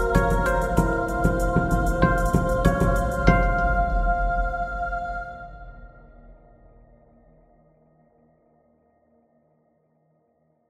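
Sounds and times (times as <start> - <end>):
drums: 0.0 - 4.4.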